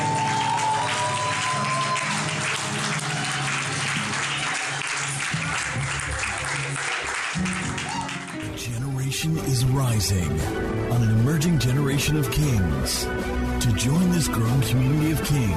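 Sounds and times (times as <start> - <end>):
church congregation clapping to welcome a pastor: 0.0 - 8.7
speech: 9.2 - 15.5.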